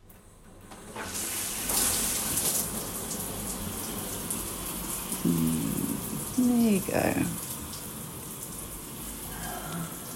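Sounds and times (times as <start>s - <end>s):
shower water running: 0.1s - 10.1s
speech: 6.4s - 7.4s.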